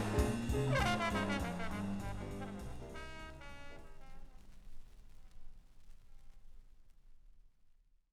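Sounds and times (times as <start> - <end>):
jazz band playing: 0.0 - 4.5.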